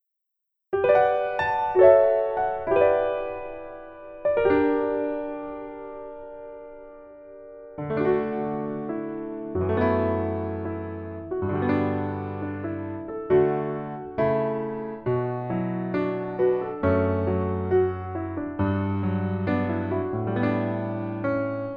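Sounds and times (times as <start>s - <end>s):
piano: 0.7s - 21.7s.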